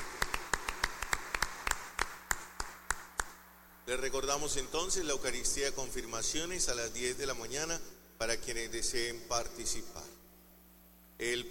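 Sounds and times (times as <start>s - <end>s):
applause for birthday celebrants: 0.0s - 3.4s
speech: 3.9s - 10.1s, 11.2s - 11.4s.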